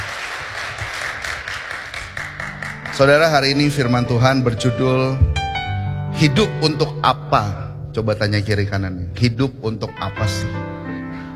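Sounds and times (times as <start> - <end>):
church congregation applauding for God during a service: 0.0 - 4.7
speech: 3.0 - 5.4, 6.2 - 10.8.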